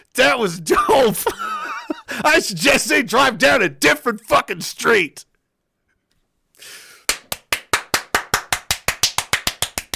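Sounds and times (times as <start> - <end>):
speech: 0.1 - 1.6, 2.2 - 5.3
laughter: 1.1 - 2.3
hand clapping: 7.0 - 9.9.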